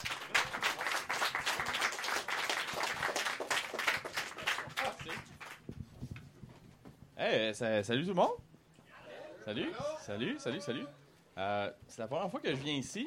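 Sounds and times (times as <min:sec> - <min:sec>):
audience applause: 0:00.0 - 0:05.6
speech: 0:07.2 - 0:08.5, 0:09.5 - 0:13.0.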